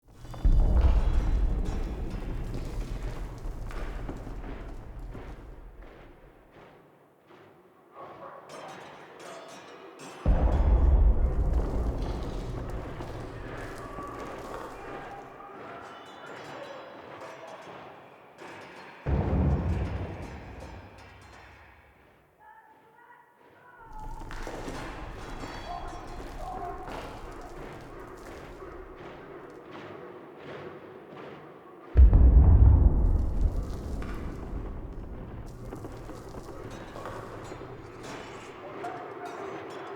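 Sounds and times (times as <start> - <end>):
distant battle heard from a castle interior: 0.0 - 6.7, 10.3 - 15.4, 19.1 - 22.1, 23.8 - 29.8, 32.0 - 39.6.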